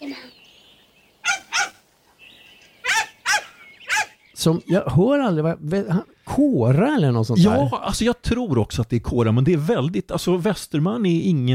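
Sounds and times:
short-haired dachshund barking: 0:01.2 - 0:01.8, 0:02.8 - 0:04.2
speech: 0:04.4 - 0:11.5.

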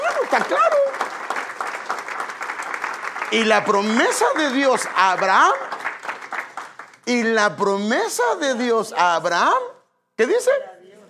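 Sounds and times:
audience applause: 0:00.0 - 0:07.0
speech: 0:00.3 - 0:00.8, 0:03.3 - 0:05.7, 0:07.1 - 0:10.7.

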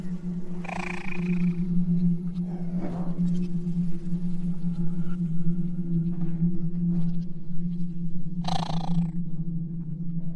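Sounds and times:
steady low hum: 0:00.0 - 0:10.3
strange animal-like cries: 0:00.6 - 0:01.6, 0:08.4 - 0:09.1.

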